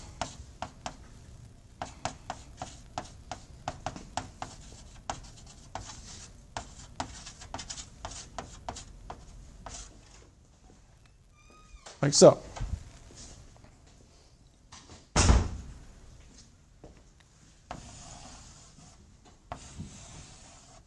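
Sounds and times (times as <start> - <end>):
writing an equation on a board during a physics lecture: 0.0 - 1.0, 1.8 - 9.9, 17.7 - 20.8
speech: 12.0 - 12.5.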